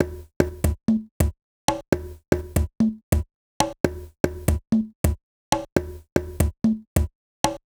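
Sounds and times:
conga loop: 0.0s - 1.1s, 1.9s - 3.2s, 3.8s - 5.2s, 5.8s - 7.1s.

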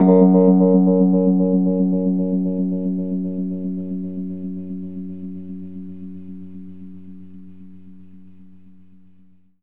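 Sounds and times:
Rhodes electric piano in F sharp: 0.0s - 6.8s.

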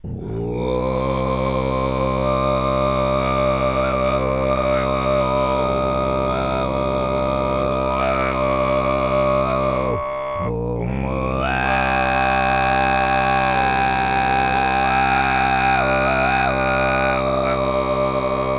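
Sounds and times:
Tuvan low voice: 0.0s - 18.5s.

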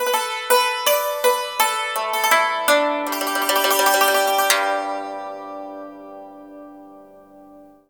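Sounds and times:
music: 0.0s - 7.8s.

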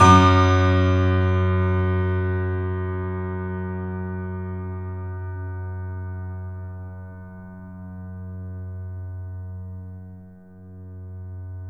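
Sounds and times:
Yamaha piano with sustain: 0.0s - 8.4s.

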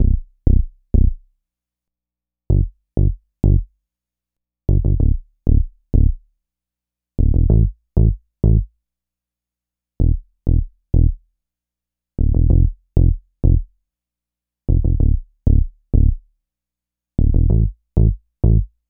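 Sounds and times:
dub bass: 0.0s - 1.2s, 2.5s - 3.7s, 4.7s - 6.2s, 7.2s - 8.6s, 10.0s - 11.2s, 12.2s - 13.6s, 14.7s - 16.2s, 17.2s - 18.7s.

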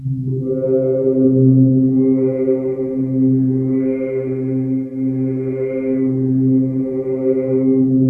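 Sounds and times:
wake up synth pad: 0.0s - 8.0s.

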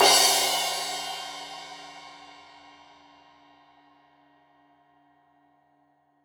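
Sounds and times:
15 inch crash cymbal edge hit: 0.0s - 2.7s.

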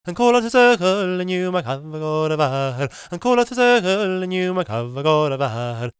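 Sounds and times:
Gaelic singing voices: 0.0s - 5.9s.

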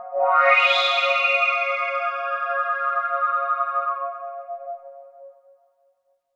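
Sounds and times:
underground UK house and electro synth pads: 0.0s - 4.1s.

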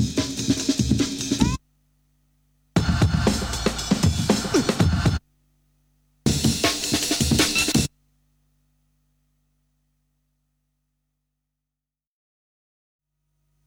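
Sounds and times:
breakbeat drums: 0.0s - 1.7s, 2.8s - 5.3s, 6.2s - 8.0s.

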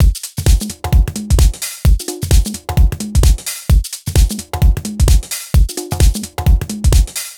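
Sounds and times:
lounge house music loop: 0.0s - 7.3s.

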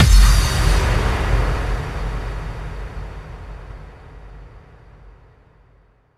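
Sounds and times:
effect kick drum hits: 0.0s - 3.6s.

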